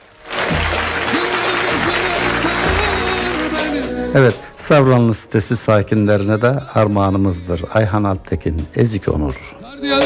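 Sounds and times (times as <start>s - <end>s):
studio audience applause: 0.0s - 4.2s
speech: 4.1s - 10.0s.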